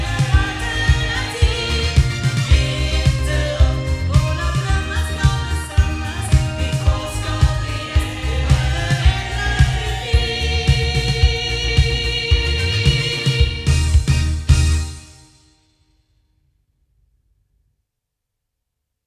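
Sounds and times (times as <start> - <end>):
sound from loudspeakers: 0.0 - 15.2.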